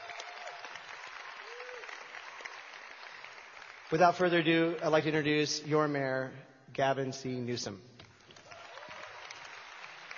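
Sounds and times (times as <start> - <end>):
audience applause: 0.0 - 5.0, 8.3 - 10.1
speech: 3.9 - 7.9.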